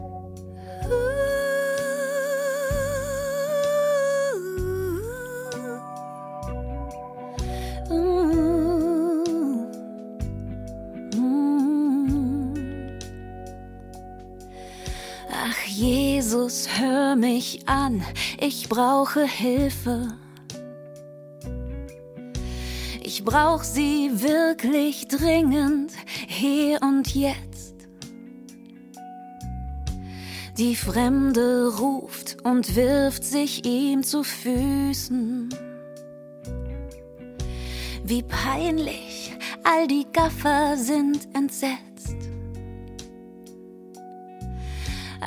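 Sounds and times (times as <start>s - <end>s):
soprano and solo singing: 0.6s - 10.1s, 11.1s - 13.0s, 14.9s - 20.4s, 22.6s - 27.7s, 30.3s - 35.7s, 37.9s - 42.1s, 44.7s - 45.2s.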